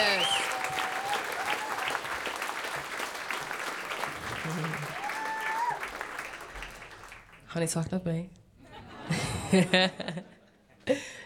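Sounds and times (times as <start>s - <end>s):
faint whistles and cheers: 0.0s - 2.2s, 4.9s - 6.1s
audience applause: 0.0s - 7.4s
speech: 7.6s - 8.4s, 9.5s - 10.3s
laughter: 8.6s - 10.6s.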